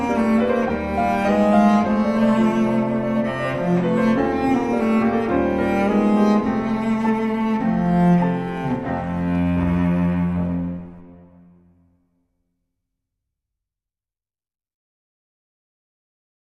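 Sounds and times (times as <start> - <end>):
Charleston-style piece for violoncello and piano: 0.0 - 12.0.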